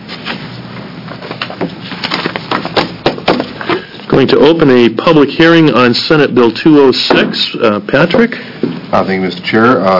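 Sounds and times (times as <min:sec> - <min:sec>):
papers shuffling: 0:01.2 - 0:03.9
speech: 0:04.2 - 0:09.9.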